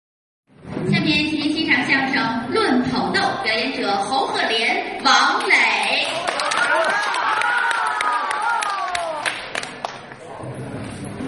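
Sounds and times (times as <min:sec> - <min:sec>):
speech: 0:00.8 - 0:05.6
audience applause: 0:05.9 - 0:10.3.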